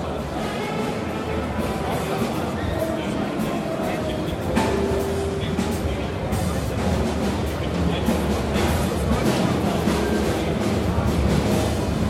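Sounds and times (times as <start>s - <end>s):
saxophone: 0.2s - 5.4s
drum: 0.2s - 12.0s.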